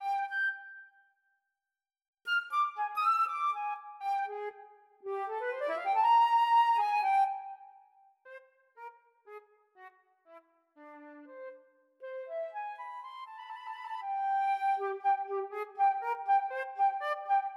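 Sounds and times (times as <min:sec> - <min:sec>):
flute: 0:00.0 - 0:01.2, 0:02.3 - 0:08.1, 0:10.8 - 0:17.5.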